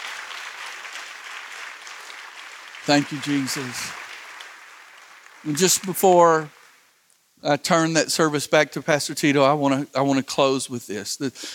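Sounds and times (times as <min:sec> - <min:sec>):
audience hand clapping: 0:00.0 - 0:07.0
speech: 0:02.9 - 0:04.0, 0:05.4 - 0:06.6, 0:07.4 - 0:11.5.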